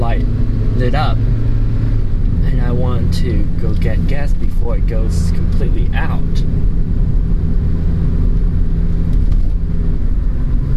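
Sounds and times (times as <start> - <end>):
car driving along a road: 0.0 - 10.7
speech: 0.8 - 1.4, 2.6 - 6.7.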